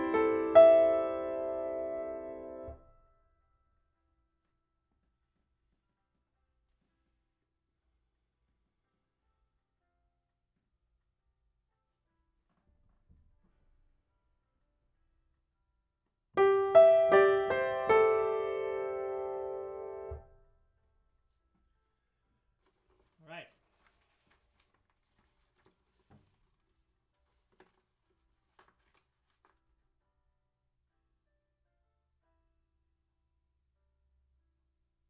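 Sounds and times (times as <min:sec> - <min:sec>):
piano: 0:00.0 - 0:03.0, 0:16.4 - 0:20.4.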